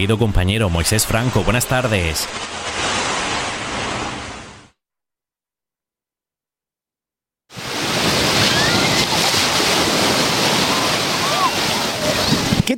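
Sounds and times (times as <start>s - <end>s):
speech: 0.0s - 3.0s
wind on a beach on Granada's tropical coast: 0.0s - 4.7s, 7.5s - 12.7s
waves washing onto a beach on Granada's tropical coast: 0.7s - 4.7s, 7.5s - 12.7s.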